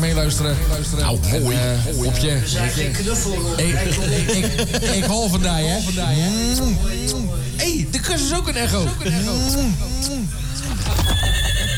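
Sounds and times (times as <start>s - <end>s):
speech: 0.2s - 11.2s
laughter: 1.4s - 11.7s
horse neighing played as a jingle: 10.9s - 11.7s.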